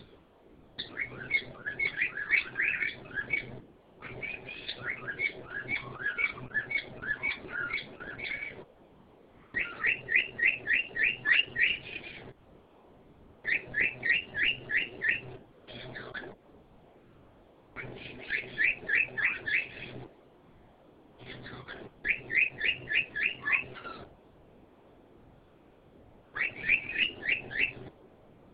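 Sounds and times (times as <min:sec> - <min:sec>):
bird twittering in rising and falling whistled notes: 0:00.8 - 0:08.6, 0:09.5 - 0:12.3, 0:13.4 - 0:15.3, 0:17.9 - 0:20.0, 0:22.0 - 0:24.0, 0:26.4 - 0:27.9.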